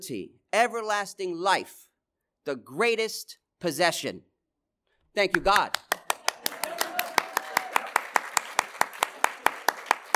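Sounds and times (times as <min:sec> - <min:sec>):
speech: 0:00.0 - 0:04.3, 0:05.2 - 0:05.8
audience clapping: 0:05.3 - 0:10.1.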